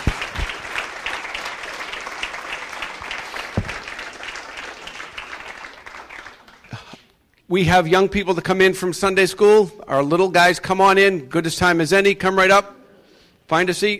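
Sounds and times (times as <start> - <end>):
audience applause: 0.0 - 7.0
speech: 7.5 - 12.8, 13.5 - 13.9.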